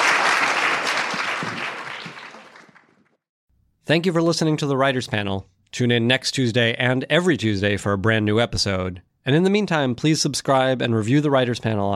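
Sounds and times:
audience applauding: 0.0s - 3.1s
speech: 3.9s - 11.9s.

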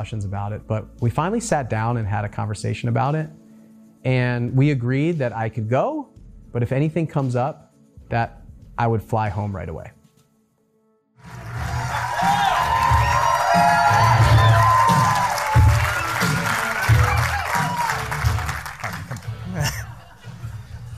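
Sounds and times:
speech: 0.0s - 3.4s, 4.0s - 10.0s
crowd cheering and applauding: 11.2s - 19.8s
crowd whooping and shouting: 11.3s - 18.7s
laughter: 18.8s - 20.9s.

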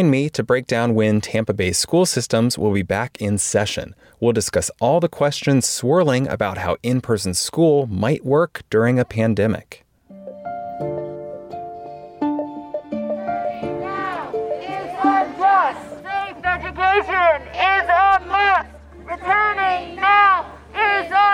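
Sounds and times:
speech: 0.0s - 9.8s
steady sustained tones: 10.1s - 20.8s
crowd of protesters chanting: 13.0s - 21.3s.

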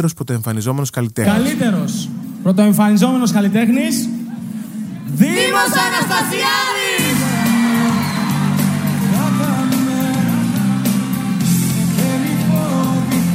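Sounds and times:
speech: 0.0s - 4.2s, 5.1s - 6.8s
audience applause: 5.4s - 13.2s.

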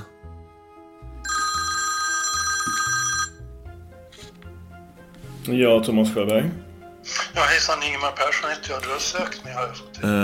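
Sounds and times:
low steady musical bed: 0.0s - 10.2s
outgoing telephone call ringing tone: 1.2s - 3.5s
speech: 5.5s - 6.7s, 7.4s - 10.2s.

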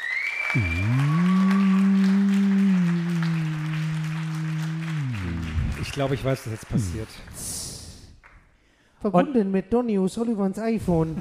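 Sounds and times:
high whistle: 0.0s - 4.2s
crowd applause: 0.0s - 7.9s
speech: 0.5s - 0.9s, 6.0s - 7.6s, 9.0s - 11.1s
loud low droning tone: 0.6s - 7.0s.

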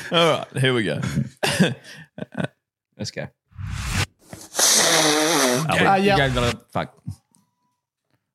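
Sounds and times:
speech: 0.1s - 3.4s, 5.0s - 7.1s
person blowing nose: 3.6s - 6.6s
sharp sniffs: 3.6s - 6.6s.

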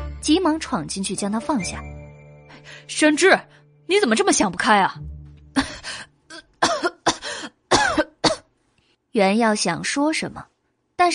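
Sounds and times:
speech: 0.2s - 1.9s, 2.7s - 5.7s, 9.2s - 10.5s
person coughing: 5.6s - 8.5s.

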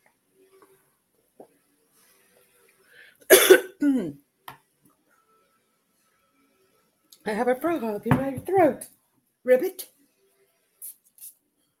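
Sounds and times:
speech: 3.8s - 4.2s, 7.3s - 9.9s
pump spray bottle spritzes of sage spray: 10.8s - 11.4s.

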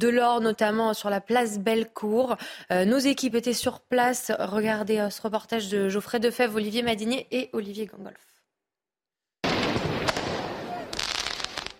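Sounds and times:
speech: 0.0s - 8.3s
firework mortar shots during street riots: 9.4s - 11.7s.

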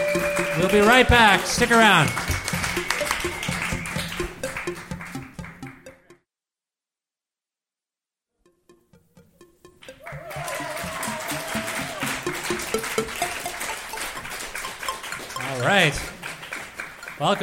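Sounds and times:
audience applause: 0.0s - 5.5s, 10.0s - 17.4s
speech: 0.6s - 2.3s, 15.8s - 16.1s, 17.2s - 17.4s.

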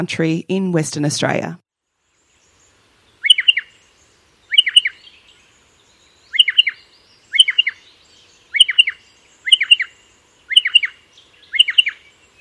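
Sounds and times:
speech: 0.0s - 1.6s
striated pardalote high paired calls: 3.1s - 5.4s, 6.2s - 12.3s.

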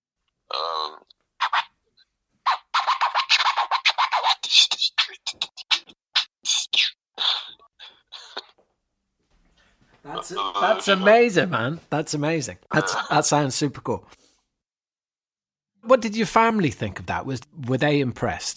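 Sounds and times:
person beatboxing over a phone line: 2.5s - 7.6s
speech: 10.3s - 14.2s, 15.9s - 18.5s.

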